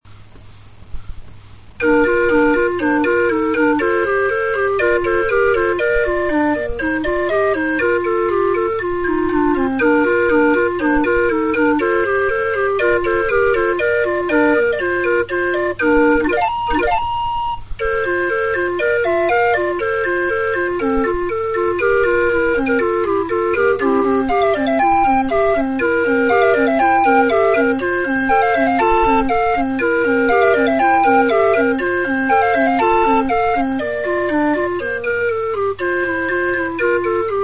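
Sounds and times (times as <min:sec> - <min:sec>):
flute clock playing: 0:01.8 - 0:37.4.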